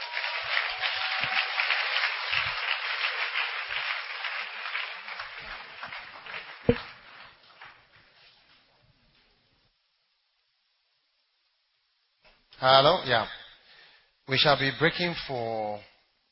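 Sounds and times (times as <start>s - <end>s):
audience clapping: 0.0s - 8.3s
speech: 12.6s - 13.4s, 14.3s - 15.9s.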